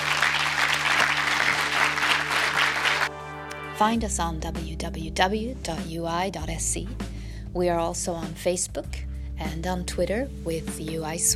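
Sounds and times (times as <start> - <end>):
audience applause for two speakers: 0.0 - 3.1
speech: 3.8 - 11.3.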